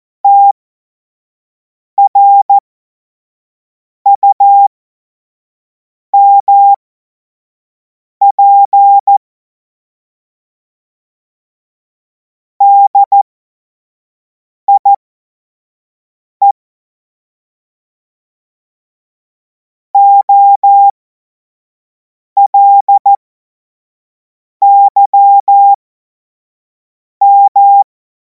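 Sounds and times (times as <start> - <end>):
morse code beeps: 0.3 - 0.5, 2.0 - 2.5, 4.2 - 4.7, 6.2 - 6.8, 8.3 - 9.2, 12.6 - 13.2, 14.7 - 15.0, 20.0 - 21.0, 22.4 - 23.2, 24.6 - 25.8, 27.2 - 27.8.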